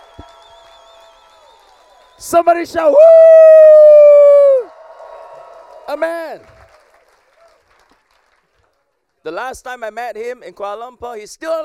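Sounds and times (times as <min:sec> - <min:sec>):
audience applauding: 0:00.0 - 0:08.9
speech: 0:02.2 - 0:03.4, 0:05.9 - 0:06.6, 0:09.2 - 0:11.6.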